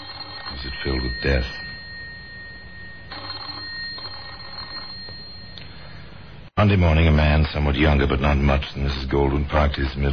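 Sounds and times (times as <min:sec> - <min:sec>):
telephone bell ringing: 0:00.0 - 0:06.2
speech: 0:00.8 - 0:01.7, 0:06.6 - 0:10.1.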